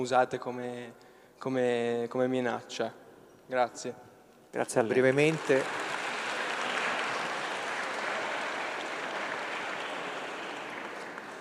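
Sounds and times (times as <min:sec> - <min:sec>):
speech: 0:00.0 - 0:05.8
audience applause after a question: 0:05.0 - 0:11.3.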